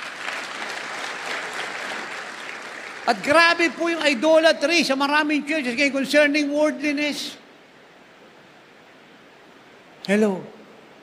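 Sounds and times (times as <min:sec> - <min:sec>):
applause: 0:00.0 - 0:04.8
speech: 0:03.1 - 0:07.4, 0:10.1 - 0:10.5.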